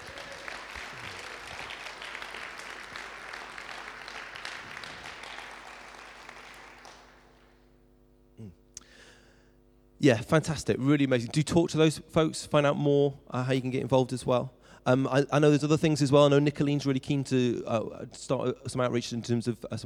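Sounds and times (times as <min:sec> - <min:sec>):
audience round of applause: 0:00.0 - 0:07.5
faint steady hum: 0:00.0 - 0:19.8
speech: 0:10.0 - 0:19.8.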